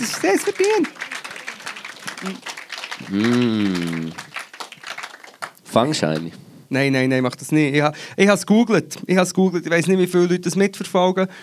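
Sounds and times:
speech: 0.0s - 1.2s, 2.2s - 4.2s, 5.8s - 11.4s
short round of applause: 0.0s - 6.3s.

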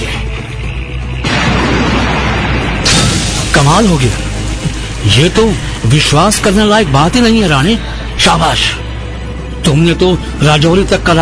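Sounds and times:
bomb explosion blowing up a picket in a wartime battle: 1.2s - 5.3s
speech: 3.6s - 4.3s, 5.0s - 8.8s, 9.6s - 11.1s.

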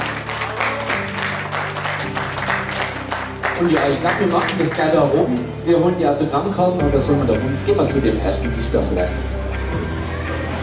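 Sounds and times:
audience applause: 0.0s - 5.0s
speech: 3.6s - 10.0s.

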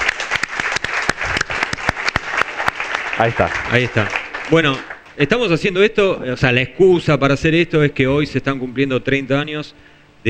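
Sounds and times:
applause: 0.0s - 5.2s
speech: 3.2s - 10.2s.

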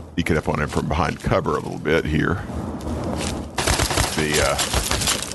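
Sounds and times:
speech: 0.2s - 2.7s, 4.2s - 4.9s
automatic weapon fire in a video game: 3.6s - 5.2s.

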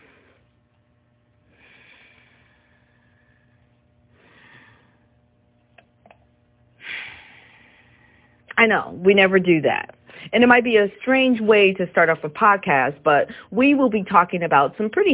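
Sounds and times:
deep breaths: 1.4s - 5.4s, 6.8s - 8.5s, 10.0s - 10.4s, 13.3s - 13.6s
speech: 8.6s - 15.1s.

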